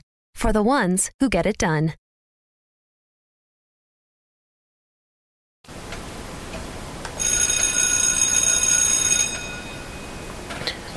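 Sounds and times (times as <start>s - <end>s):
speech: 0.4s - 2.0s
bell ringing: 7.2s - 10.8s.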